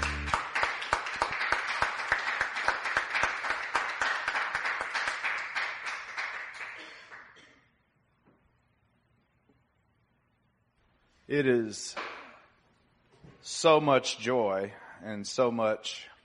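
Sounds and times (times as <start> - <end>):
crowd clapping: 0.0 - 7.4
speech: 11.3 - 12.0, 13.6 - 16.1.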